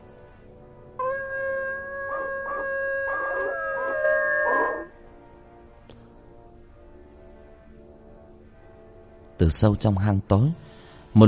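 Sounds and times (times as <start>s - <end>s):
pack of dogs howling: 1.0s - 4.9s
speech: 9.4s - 11.2s.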